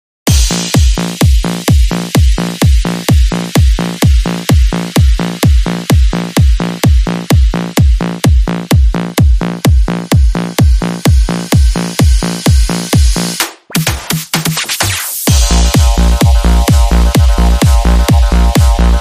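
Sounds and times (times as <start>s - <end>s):
house music: 0.3s - 18.9s.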